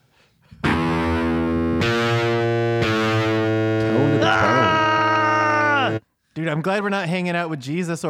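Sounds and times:
distorted electric guitar riff: 0:00.6 - 0:06.0
speech: 0:06.5 - 0:08.0.

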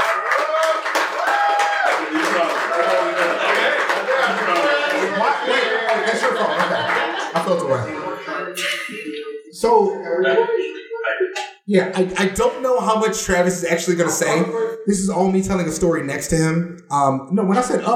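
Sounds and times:
audience clapping: 0:00.0 - 0:08.2
laughter: 0:00.0 - 0:11.4, 0:17.5 - 0:17.9
speech: 0:07.4 - 0:09.0, 0:09.6 - 0:17.9.

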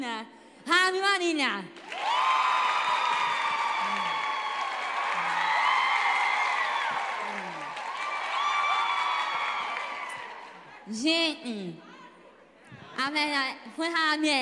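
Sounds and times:
speech: 0:00.2 - 0:01.8, 0:10.9 - 0:11.9, 0:13.0 - 0:14.3
audience applause: 0:01.8 - 0:10.9.

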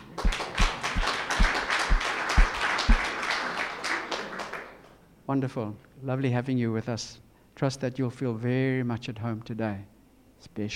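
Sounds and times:
regular low thumping beat: 0:00.0 - 0:03.1
audience applause: 0:00.0 - 0:04.8
speech: 0:05.3 - 0:10.7.

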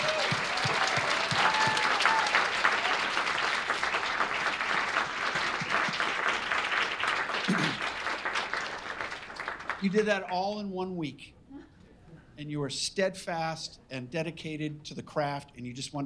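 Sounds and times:
audience applause: 0:00.0 - 0:10.3
speech: 0:09.8 - 0:11.4, 0:12.4 - 0:16.0.

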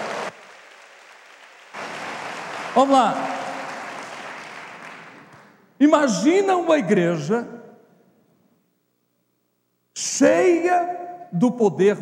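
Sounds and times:
audience applause: 0:00.0 - 0:05.6
speech: 0:02.8 - 0:03.3, 0:05.8 - 0:07.6, 0:10.2 - 0:12.0.

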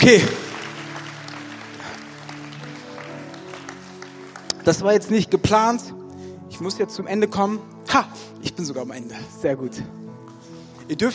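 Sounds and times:
speech: 0:00.0 - 0:00.4, 0:04.7 - 0:10.0, 0:10.9 - 0:11.1
audience applause: 0:00.0 - 0:05.0.

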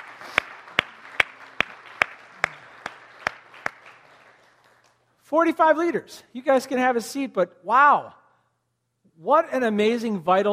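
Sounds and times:
audience applause: 0:00.0 - 0:05.0
speech: 0:05.3 - 0:08.2, 0:09.2 - 0:10.5.

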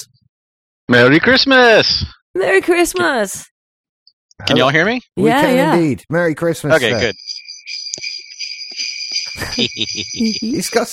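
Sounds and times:
speech: 0:00.9 - 0:03.5, 0:04.4 - 0:07.4, 0:09.4 - 0:10.9
sleigh bells jingling over phone line: 0:05.2 - 0:06.0, 0:06.7 - 0:07.2, 0:08.7 - 0:10.9
laughter: 0:05.2 - 0:07.1, 0:09.3 - 0:10.4.

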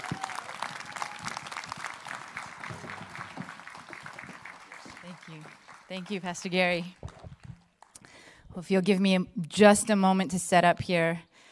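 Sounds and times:
church audience applauding a guest speaker: 0:00.0 - 0:08.0
speech: 0:05.9 - 0:07.0, 0:08.6 - 0:11.3.

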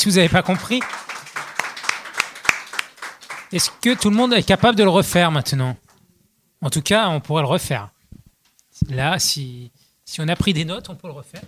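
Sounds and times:
speech: 0:00.0 - 0:01.1, 0:03.5 - 0:05.8, 0:06.6 - 0:08.0, 0:08.8 - 0:11.4
audience applause: 0:00.3 - 0:04.4.

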